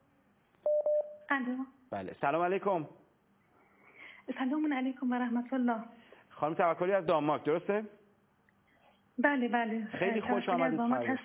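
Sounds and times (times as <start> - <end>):
touch-tone telephone beeps as a phone line connects: 0.6 - 1.2
speech: 1.3 - 3.0, 4.3 - 8.0, 9.2 - 11.2.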